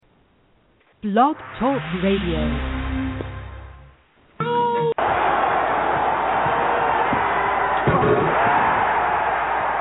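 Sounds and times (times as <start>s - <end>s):
speech: 1.0s - 2.8s
arena crowd cheering: 4.8s - 9.7s.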